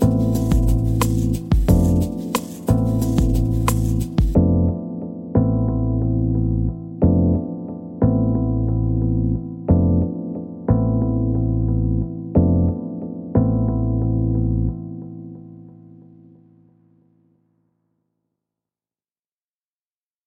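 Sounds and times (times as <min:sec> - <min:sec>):
lounge music: 0:00.0 - 0:14.3.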